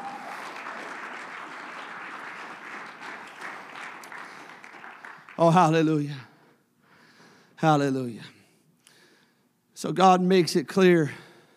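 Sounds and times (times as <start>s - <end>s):
audience clapping: 0.0s - 6.1s
speech: 5.4s - 6.3s, 7.6s - 8.4s, 9.8s - 11.2s.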